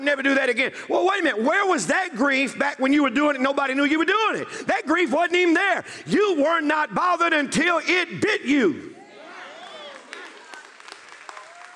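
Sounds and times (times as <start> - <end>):
speech: 0.0 - 8.9
crowd, audience clapping: 9.4 - 11.7.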